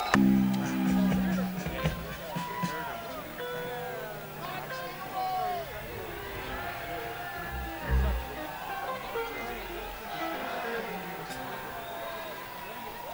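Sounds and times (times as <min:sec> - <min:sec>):
encore music break: 0:00.1 - 0:10.4.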